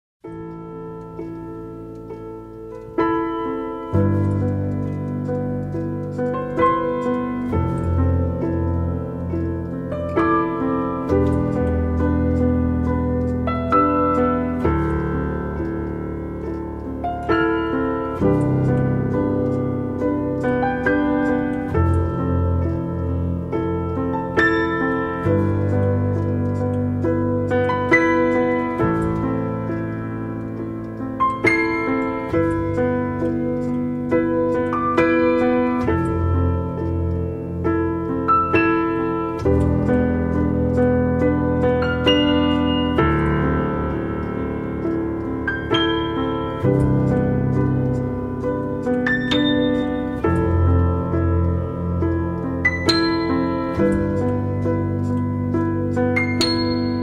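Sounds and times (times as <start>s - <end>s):
piano: 0.2s - 57.0s.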